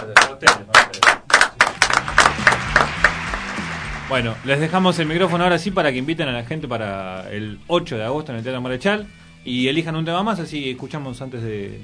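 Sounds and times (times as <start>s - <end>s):
speech: 0.0s - 0.8s, 4.1s - 11.8s
audience applause for a band: 0.0s - 6.1s.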